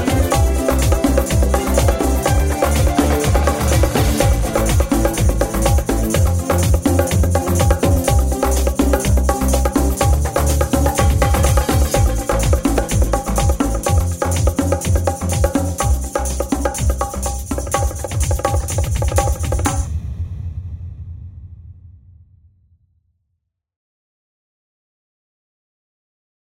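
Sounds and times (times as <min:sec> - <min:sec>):
disco music: 0:00.0 - 0:19.9.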